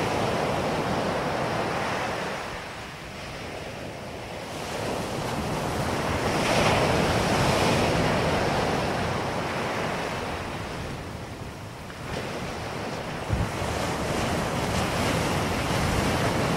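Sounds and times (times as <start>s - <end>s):
ocean waves crashing: 0.0s - 16.5s.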